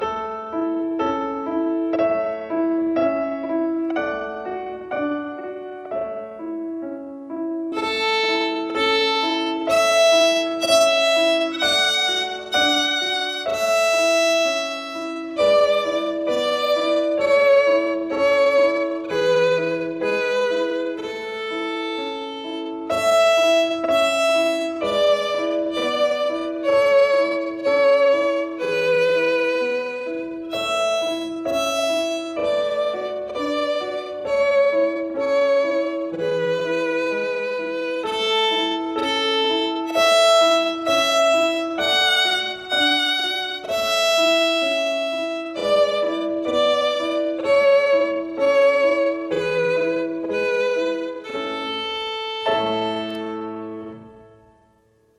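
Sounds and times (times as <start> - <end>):
slow melody: 0.0 - 55.1.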